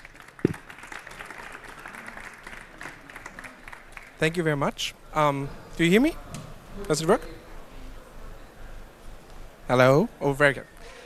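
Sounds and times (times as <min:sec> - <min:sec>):
audience applause: 0:00.0 - 0:04.3
speech: 0:04.2 - 0:07.4, 0:09.7 - 0:11.0.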